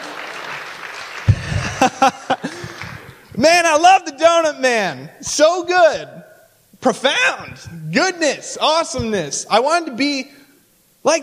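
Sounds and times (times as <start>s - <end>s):
audience clapping: 0.0s - 3.4s
laughter: 1.2s - 3.3s
speech: 3.4s - 6.2s, 6.8s - 10.4s, 11.0s - 11.2s.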